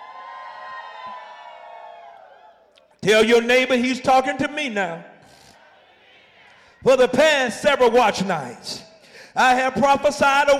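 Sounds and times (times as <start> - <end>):
audience screaming and cheering: 0.0 - 3.0
speech: 3.0 - 5.1, 6.8 - 8.8, 9.4 - 10.5.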